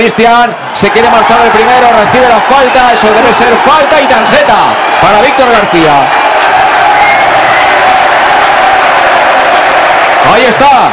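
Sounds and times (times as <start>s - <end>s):
speech: 0.0s - 6.3s, 10.2s - 10.9s
stadium crowd applauding: 0.0s - 10.9s.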